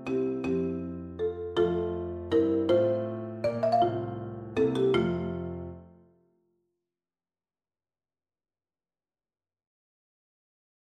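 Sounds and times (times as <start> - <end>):
classical sonata: 0.0 - 6.1.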